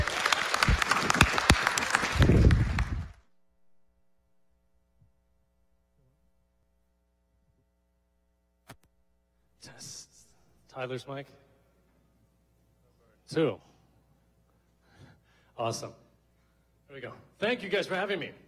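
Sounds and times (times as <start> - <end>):
audience applause: 0.0 - 3.3
speech: 10.8 - 11.5, 13.3 - 13.7, 15.6 - 16.0, 16.9 - 18.4.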